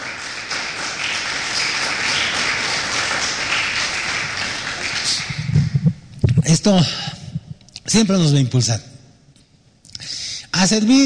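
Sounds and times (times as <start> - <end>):
audience applause: 0.0 - 5.8
speech: 6.5 - 7.2, 7.9 - 8.9, 10.6 - 11.0.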